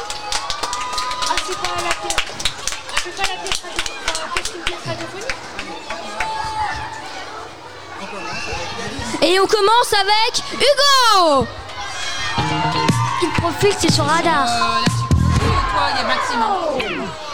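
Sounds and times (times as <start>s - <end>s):
audience applauding loudly: 0.0s - 7.0s, 12.3s - 17.3s
speech: 1.5s - 6.4s, 8.5s - 11.6s, 13.4s - 15.0s, 15.8s - 17.2s.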